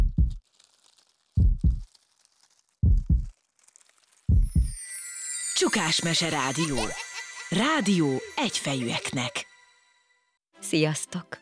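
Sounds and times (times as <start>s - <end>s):
loud heartbeat: 0.0s - 0.4s, 1.4s - 1.9s, 2.8s - 3.3s, 4.3s - 4.8s
speech: 5.6s - 9.4s, 10.7s - 11.4s.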